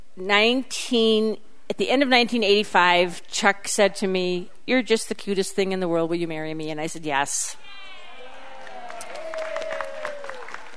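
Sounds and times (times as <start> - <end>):
speech: 0.2 - 7.8
man clapping his hands: 8.7 - 10.7.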